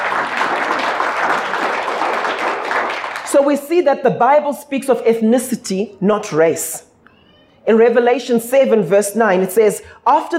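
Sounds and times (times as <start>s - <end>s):
audience applause: 0.0s - 3.3s
speech: 3.4s - 6.9s, 7.6s - 10.3s.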